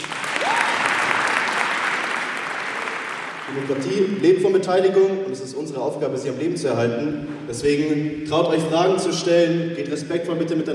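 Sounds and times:
audience clapping: 0.0s - 4.2s
speech: 3.6s - 10.7s.

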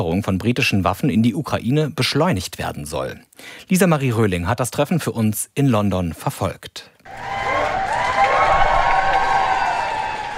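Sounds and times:
speech: 0.0s - 7.4s
crowd applauding and cheering outdoors: 7.1s - 10.3s
high whoops: 7.1s - 10.3s.

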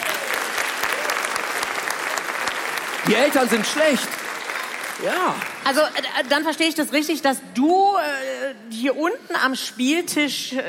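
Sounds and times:
audience applause: 0.0s - 6.4s
speech: 3.1s - 4.2s, 5.0s - 10.6s.

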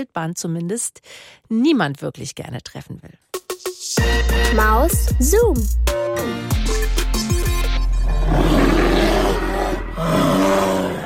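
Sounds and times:
speech: 0.0s - 6.6s
bear roaring: 7.9s - 11.0s.

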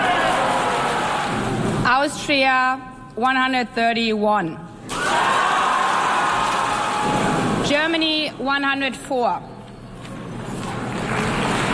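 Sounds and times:
applause in assembly hall: 0.0s - 1.4s, 5.4s - 7.0s, 10.6s - 11.7s
speech: 1.9s - 5.2s, 7.0s - 9.5s.

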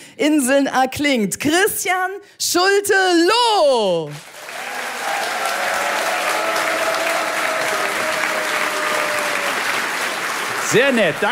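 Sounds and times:
speech: 0.2s - 4.4s, 10.7s - 11.3s
crowd applause: 4.1s - 11.3s.

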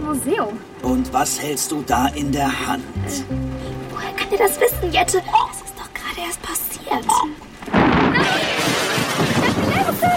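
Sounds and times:
speech: 0.2s - 5.6s, 6.2s - 8.5s
lightning strike crackling across the ground: 7.6s - 10.1s.

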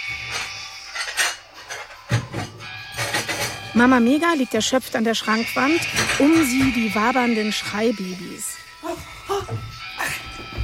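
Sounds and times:
dishes clattering in a video game: 0.0s - 7.8s
speech: 3.8s - 8.6s.

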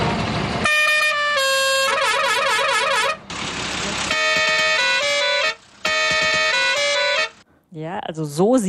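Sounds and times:
traffic rumble: 0.0s - 8.6s
car horns honking in Indian traffic: 0.6s - 3.3s, 3.9s - 7.4s
speech: 8.1s - 8.6s.

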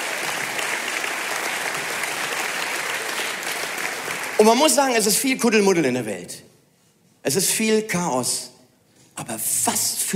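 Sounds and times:
crowd clapping: 0.0s - 4.8s
speech: 4.4s - 6.5s, 7.2s - 8.6s, 9.2s - 10.1s.

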